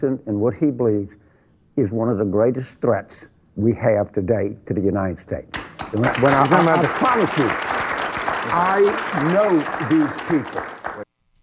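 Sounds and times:
speech: 0.0s - 7.8s, 8.5s - 11.1s
Bill Maher's studio audience clapping: 5.6s - 11.1s.

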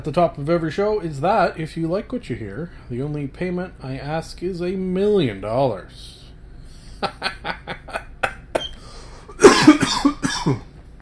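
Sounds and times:
speech: 0.0s - 6.2s, 7.0s - 7.6s, 10.0s - 10.7s
laughter: 6.8s - 8.7s
person coughing: 8.3s - 10.7s
throat clearing: 9.4s - 10.7s.

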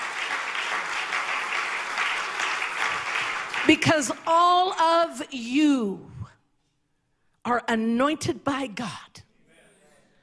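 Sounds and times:
audience clapping hands: 0.0s - 4.3s
speech: 3.6s - 6.1s, 7.4s - 9.1s.

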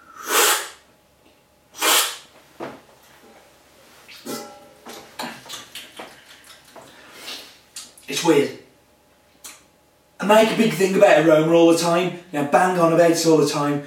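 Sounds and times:
person spitting coffee onto the floor: 0.1s - 0.8s, 1.8s - 2.3s
speech: 8.1s - 8.6s, 10.3s - 13.8s.

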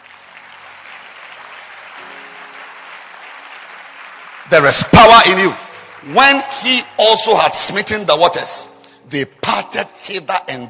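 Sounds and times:
crowd applause: 0.0s - 7.7s
speech: 4.5s - 10.6s.

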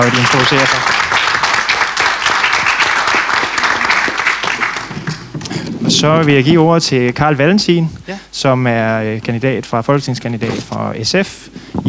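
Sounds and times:
speech: 0.0s - 1.0s, 6.0s - 11.5s
audience applause: 0.0s - 5.8s.

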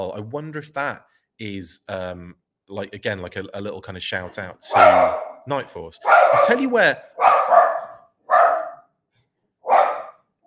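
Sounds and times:
speech: 0.0s - 7.6s
guard dog barking: 4.7s - 8.9s, 9.6s - 10.3s.

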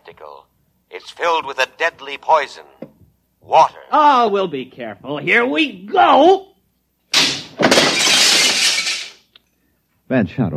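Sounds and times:
speech: 0.2s - 2.8s, 3.4s - 6.5s, 10.1s - 10.5s
glass cooling tubes shattering: 7.1s - 9.3s.

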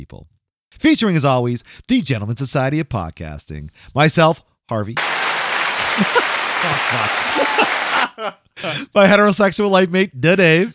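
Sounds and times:
speech: 0.0s - 5.2s, 6.0s - 10.7s
hand clap: 5.0s - 8.2s
laughter: 5.0s - 9.2s.

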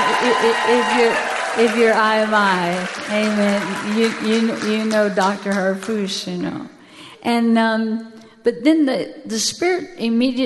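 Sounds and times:
audience clapping: 0.0s - 6.2s
speech: 0.2s - 10.4s.

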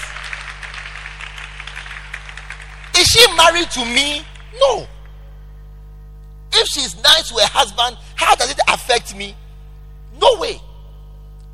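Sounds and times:
audience clapping: 0.0s - 3.0s
speech: 3.1s - 4.9s, 6.6s - 9.4s, 10.2s - 10.7s.

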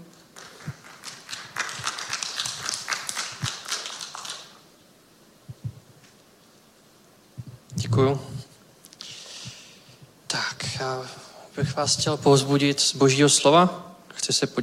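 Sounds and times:
audience applauding: 0.0s - 4.6s
speech: 7.9s - 8.3s, 10.9s - 14.6s.

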